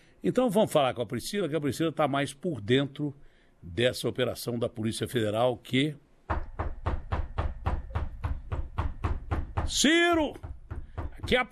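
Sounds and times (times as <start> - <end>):
speech: 0.2 - 6.4, 9.7 - 10.5, 11.3 - 11.5
heavy knocking on a door: 6.3 - 11.5.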